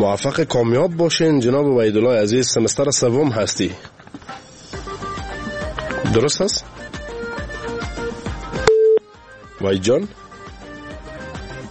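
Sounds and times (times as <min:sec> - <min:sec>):
speech: 0:00.0 - 0:04.0, 0:06.1 - 0:06.7, 0:09.6 - 0:10.2
phone line beep after a call from Khost dropped: 0:08.6 - 0:09.1.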